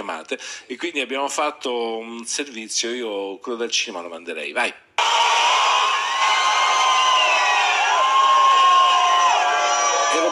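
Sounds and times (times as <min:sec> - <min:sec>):
speech: 0:00.1 - 0:04.8
crowd cheering: 0:05.0 - 0:10.3.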